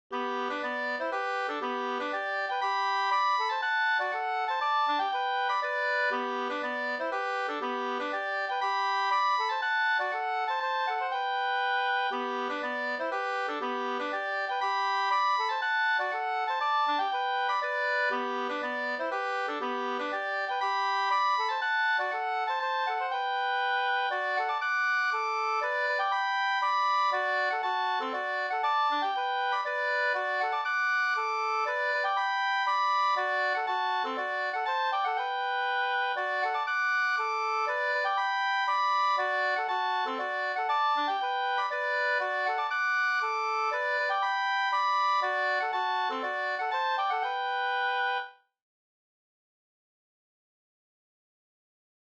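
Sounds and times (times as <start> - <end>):
two-part polska dance tune: 0.1 - 48.4.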